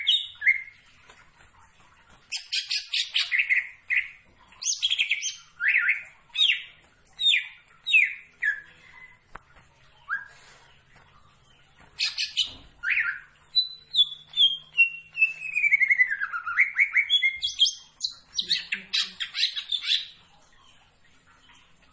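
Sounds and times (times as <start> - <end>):
leafbird singing vigorously: 2.3 - 9.2, 9.9 - 20.8.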